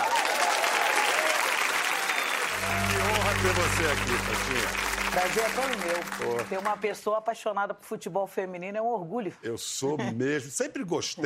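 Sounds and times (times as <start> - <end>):
audience applauding to welcome a women's football veteran: 0.0 - 7.1
speech: 2.7 - 11.2.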